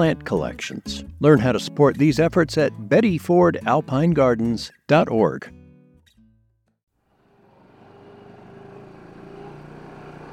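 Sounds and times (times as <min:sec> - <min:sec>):
speech: 0:00.0 - 0:05.6
off-road vehicle engine driving on steep dirt trails: 0:07.1 - 0:10.3.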